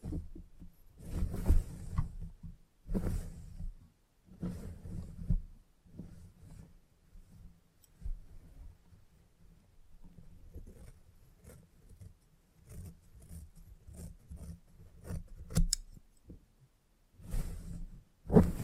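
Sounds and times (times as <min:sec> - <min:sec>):
salon haircut rustling and brushing: 0:00.0 - 0:15.4, 0:17.1 - 0:18.6
quick scissors snipping clicks: 0:15.5 - 0:15.9.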